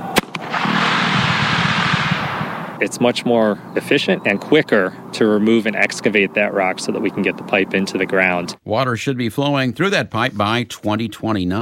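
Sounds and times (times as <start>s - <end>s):
dynamite blast breaking up rock for a water pipeline: 0.0s - 2.8s
speech: 2.8s - 11.6s.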